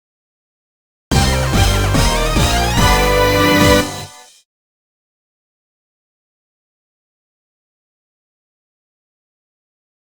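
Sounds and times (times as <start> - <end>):
summon music: 1.1 - 4.4.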